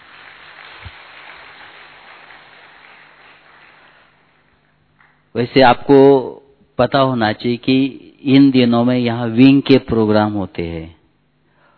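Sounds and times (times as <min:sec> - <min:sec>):
audience applause: 0:00.0 - 0:04.2
speech: 0:05.4 - 0:11.0.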